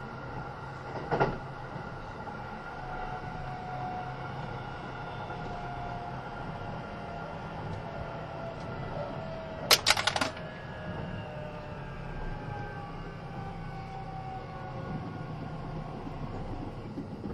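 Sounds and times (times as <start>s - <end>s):
Kintetsu 80000 series Hinotori train running between Kintetsu Nagoya and Isuzugawa: 0.0s - 17.3s
sharp clicks or clanks: 9.7s - 10.4s.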